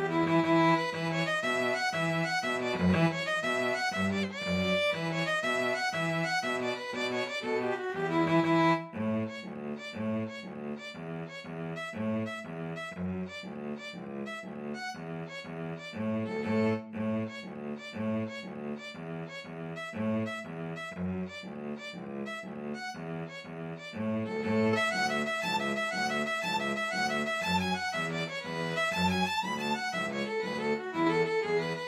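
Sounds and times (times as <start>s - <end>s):
string trio playing an Irish jig medley: 0.0s - 31.8s.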